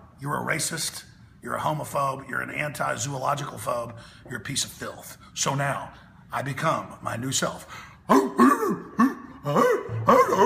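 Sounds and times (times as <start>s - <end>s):
speech: 0.2s - 10.4s
man imitating a barking dog: 8.1s - 10.4s.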